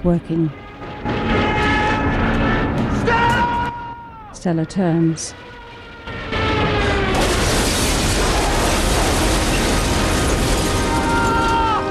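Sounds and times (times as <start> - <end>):
speech: 0.0 - 1.3, 4.4 - 5.6
plane crashing and exploding in a field: 0.8 - 3.1, 5.7 - 11.8.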